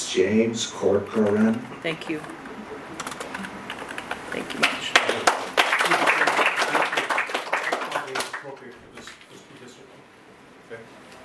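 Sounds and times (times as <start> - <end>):
speech: 0.1 - 2.5
audience applause: 2.2 - 8.8
audience cheering: 4.0 - 8.6.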